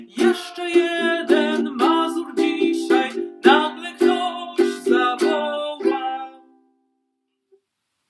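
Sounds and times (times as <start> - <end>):
person singing a mazurka in C major: 0.0 - 6.5.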